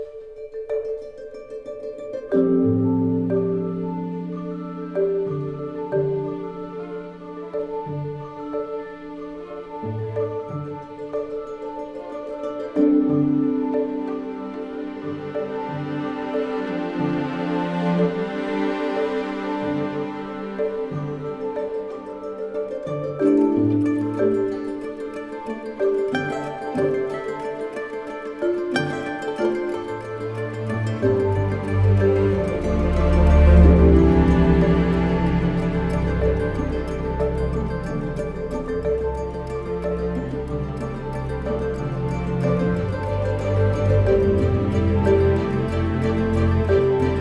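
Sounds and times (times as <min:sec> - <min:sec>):
symphonic version of a piece: 0:00.1 - 0:47.2.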